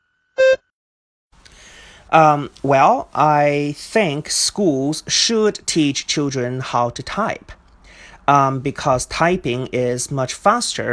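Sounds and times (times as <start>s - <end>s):
short buzzy electronic beep signalling start of response: 0.4s - 0.7s
speech: 2.1s - 7.6s, 8.3s - 10.9s.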